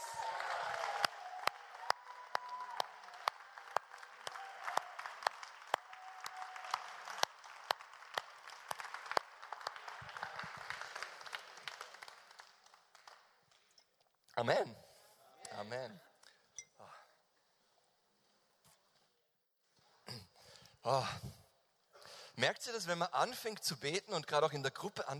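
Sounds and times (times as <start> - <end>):
audience applause and cheering: 0.0 - 13.2
speech: 14.4 - 14.8, 15.6 - 16.1, 20.9 - 21.4, 22.4 - 25.1.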